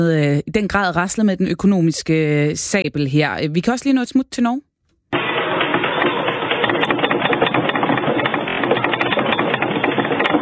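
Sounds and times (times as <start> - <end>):
speech: 0.0 - 4.7
recorded earthquake rumble in northern Norway: 5.2 - 10.4.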